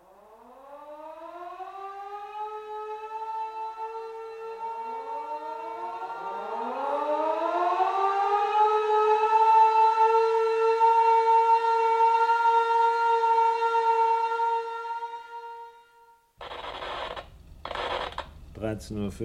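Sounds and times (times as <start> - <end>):
fire alarm siren during evacuation drill: 0.0 - 18.5.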